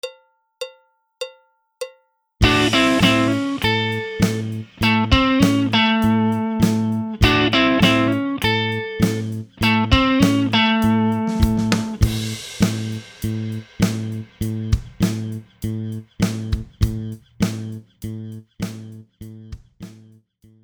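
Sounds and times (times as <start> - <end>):
guitar exercise: 2.4 - 17.8.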